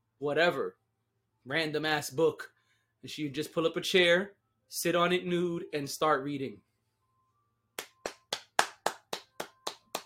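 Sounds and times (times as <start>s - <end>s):
speech: 0.2s - 0.8s, 1.4s - 6.7s
hands clapping in applause: 7.8s - 10.0s.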